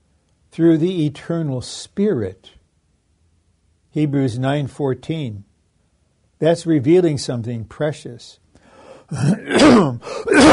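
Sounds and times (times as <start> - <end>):
speech: 0.6 - 2.6, 3.9 - 5.5, 6.4 - 8.4, 9.1 - 10.5
phlegmy throat clearing: 9.1 - 10.5.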